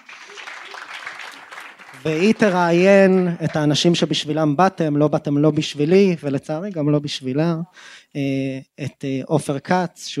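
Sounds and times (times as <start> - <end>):
audience applause: 0.0 - 4.0
speech: 2.0 - 10.1.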